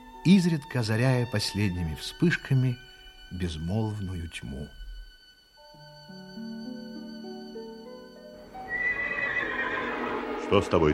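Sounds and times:
speech: 0.2 - 4.8, 10.5 - 10.9
horse neighing: 8.6 - 10.4.

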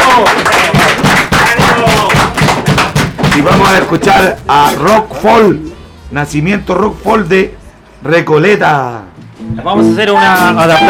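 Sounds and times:
applause: 0.0 - 3.9
speech: 0.2 - 0.6, 3.4 - 10.8.

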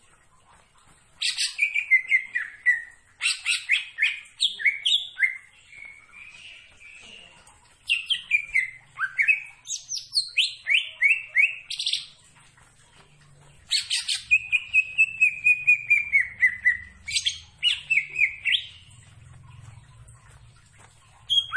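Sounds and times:
leafbird singing vigorously: 1.2 - 12.3, 12.9 - 21.5.

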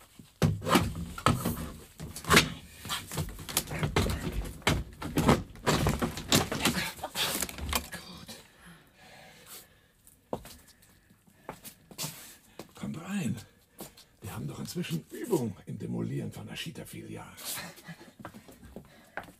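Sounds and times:
garden shed door being levered up with a spade: 0.4 - 8.0
speech: 14.8 - 18.0.

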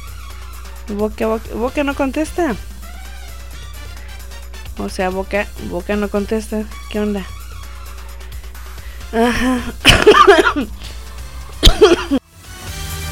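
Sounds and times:
steady low hum: 0.0 - 12.2
speech: 0.9 - 2.7, 4.8 - 7.4, 9.1 - 11.0
harsh, throaty coughing: 9.2 - 10.8, 11.6 - 12.2.

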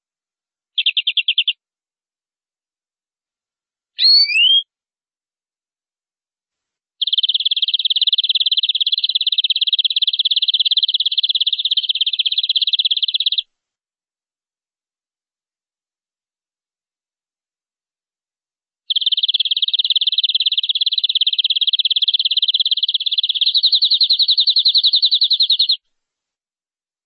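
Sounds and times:
canary singing: 0.8 - 1.6, 4.0 - 4.6, 7.0 - 13.4, 18.9 - 25.8.

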